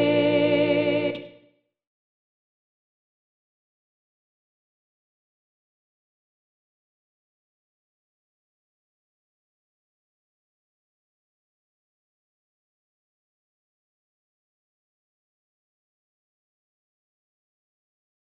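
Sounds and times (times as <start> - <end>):
alto singing: 0.0 - 1.4.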